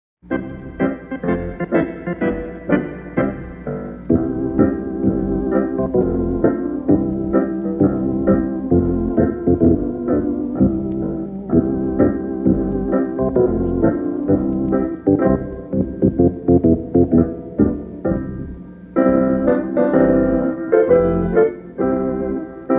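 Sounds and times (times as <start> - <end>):
instrumental music: 0.2 - 22.7.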